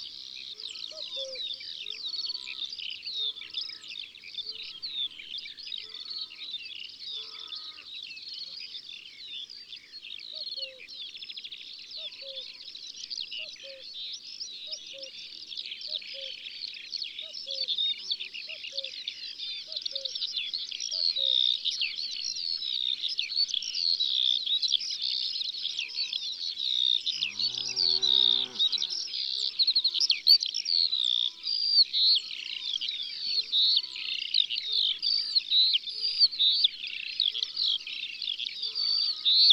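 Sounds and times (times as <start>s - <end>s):
birds singing in the countryside: 0.0s - 39.5s
Eurasian skylark singing: 19.6s - 39.5s.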